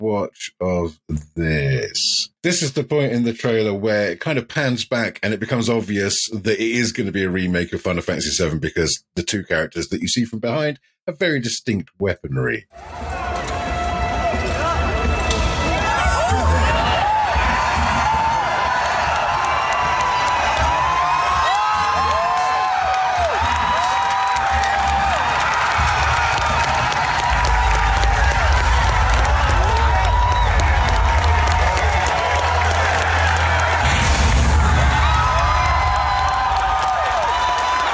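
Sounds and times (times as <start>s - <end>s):
speech: 0.0s - 13.6s
crowd of professionals cheering and screaming: 12.8s - 37.9s.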